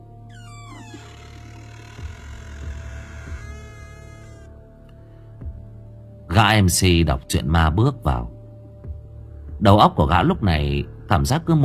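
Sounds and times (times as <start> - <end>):
door creaking open: 0.3 - 4.5
speech: 6.4 - 8.4, 9.6 - 11.6.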